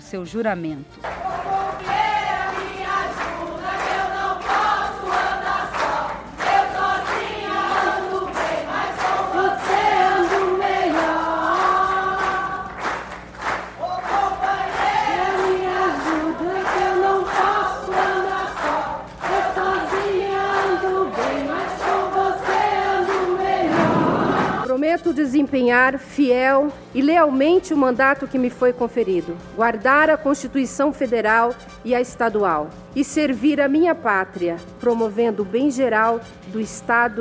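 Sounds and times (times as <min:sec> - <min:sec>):
speech: 0:00.1 - 0:01.2, 0:25.0 - 0:37.1
chorus of women's voices chanting in unison: 0:01.2 - 0:12.8, 0:13.8 - 0:24.7
low hum: 0:02.8 - 0:24.7.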